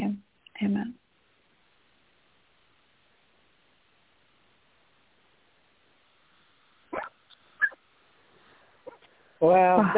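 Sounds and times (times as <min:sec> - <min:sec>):
quiet hiss: 0:00.0 - 0:09.9
dog barking: 0:06.9 - 0:07.8
speech: 0:09.4 - 0:09.9.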